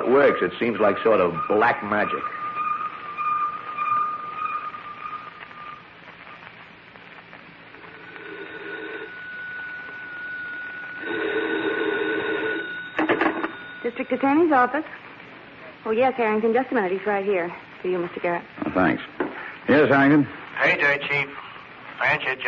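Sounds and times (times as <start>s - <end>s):
wire photo machine transmitting a picture: 0.0s - 15.5s
speech: 0.1s - 2.4s, 14.1s - 15.0s, 15.8s - 21.4s, 22.0s - 22.4s.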